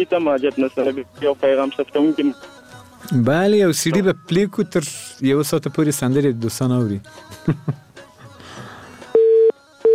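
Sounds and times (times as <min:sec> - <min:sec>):
speech: 0:00.0 - 0:02.5, 0:03.1 - 0:07.8
telephone busy tone after a dropped call: 0:09.2 - 0:09.9.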